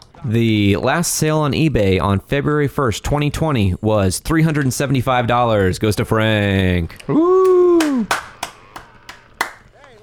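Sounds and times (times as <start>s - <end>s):
speech: 0.2s - 8.2s
one person clapping: 7.4s - 10.0s.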